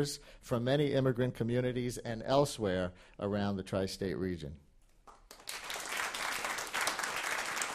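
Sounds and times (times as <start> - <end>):
speech: 0.0 - 4.6
crowd applause: 5.3 - 7.7.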